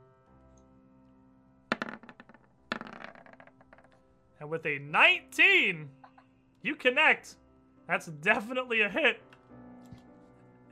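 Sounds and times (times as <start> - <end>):
dice roll clicked on a computer during a tabletop role-playing game: 1.7 - 4.0
speech: 4.4 - 6.0, 6.6 - 9.3.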